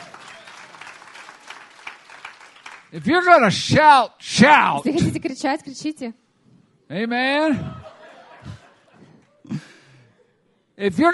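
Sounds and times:
audience clapping: 0.0 - 3.0
speech: 2.9 - 6.2, 6.9 - 7.8, 10.8 - 11.1
laughter: 7.5 - 9.8.

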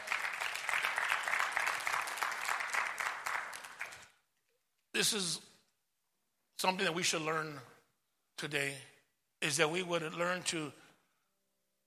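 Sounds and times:
audience applauding: 0.0 - 4.2
speech: 5.0 - 5.5, 6.6 - 7.7, 8.4 - 10.8.

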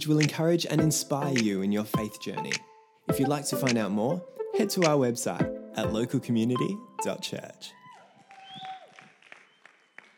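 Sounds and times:
speech: 0.0 - 7.8
weak audience cheer: 7.7 - 9.8.

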